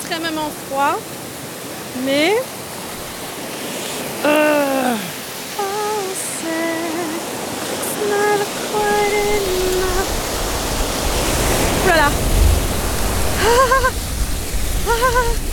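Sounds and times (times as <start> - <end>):
cold spring water flowing: 0.0 - 15.5
speech: 0.1 - 1.2, 2.0 - 2.6, 4.2 - 4.6, 13.4 - 13.9, 14.9 - 15.5
laughter: 13.4 - 14.0, 14.9 - 15.5.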